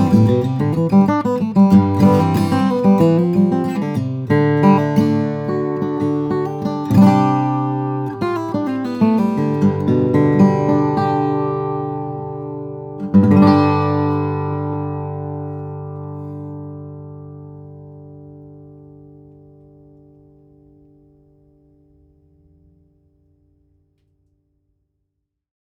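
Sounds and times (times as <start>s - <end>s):
flattop steel string guitars of black walnut and red cedar: 0.0s - 20.0s.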